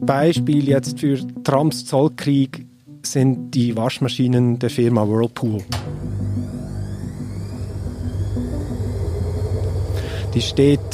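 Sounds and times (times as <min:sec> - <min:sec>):
speech: 0:00.0 - 0:05.9, 0:10.3 - 0:10.9
helicopter droning overhead: 0:06.1 - 0:10.9.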